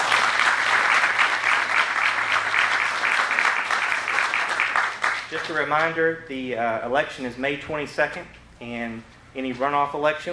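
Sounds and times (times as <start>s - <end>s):
audience applause for candidates: 0.0s - 5.6s
speech: 5.3s - 10.3s.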